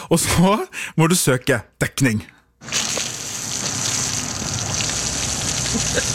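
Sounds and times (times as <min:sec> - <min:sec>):
speech: 0:00.1 - 0:02.8, 0:05.7 - 0:06.1
Cola gushing from bottle after Mentos: 0:02.6 - 0:06.1.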